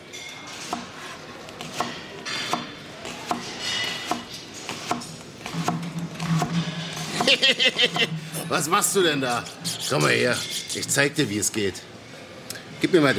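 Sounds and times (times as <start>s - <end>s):
knife chopping onions: 0.6s - 6.6s
laughter: 7.1s - 8.4s
speech: 7.3s - 11.9s, 12.9s - 13.1s.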